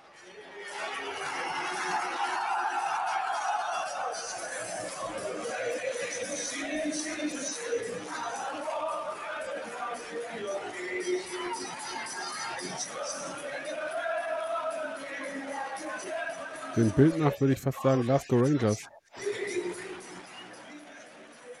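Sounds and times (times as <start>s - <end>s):
football stadium crowd singing a club anthem at a derby: 0.0s - 21.5s
speech: 16.8s - 19.0s.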